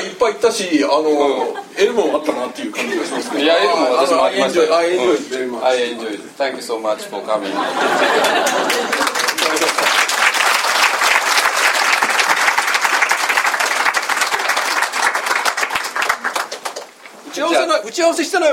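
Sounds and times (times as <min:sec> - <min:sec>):
speech: 0:00.2 - 0:09.0, 0:18.0 - 0:18.5
laughter: 0:01.2 - 0:04.4, 0:07.3 - 0:10.1
audience applause: 0:07.9 - 0:17.0.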